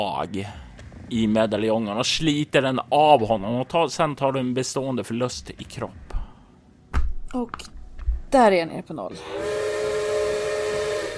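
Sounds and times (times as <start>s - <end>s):
speech: 0.0s - 6.1s, 7.3s - 9.5s
steam train whistle: 9.2s - 11.1s.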